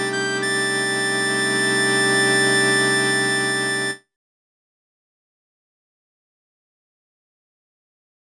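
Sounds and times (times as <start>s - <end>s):
synthesized harmonica audio: 0.0s - 4.0s.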